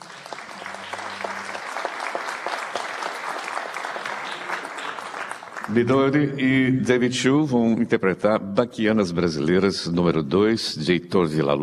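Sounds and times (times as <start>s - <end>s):
audience applause: 0.0s - 6.2s
speech: 5.7s - 11.6s.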